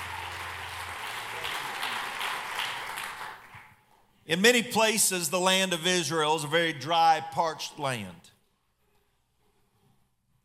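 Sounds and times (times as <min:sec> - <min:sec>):
audience clapping hands: 0:00.0 - 0:03.9
speech: 0:04.3 - 0:08.3.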